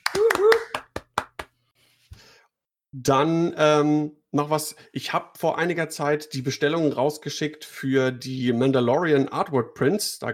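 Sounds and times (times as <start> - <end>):
person whooping: 0.0 - 1.0
single person clapping: 0.0 - 1.6
speech: 3.0 - 10.3.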